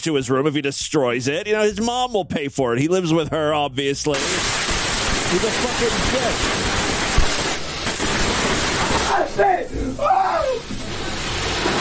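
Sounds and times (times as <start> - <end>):
speech: 0.0 - 4.7, 5.3 - 6.9
sharp pops: 4.2 - 9.5
fireworks shooting out of a Pikachu toy: 4.2 - 9.6, 10.4 - 11.7
voices exclaiming: 8.9 - 10.7.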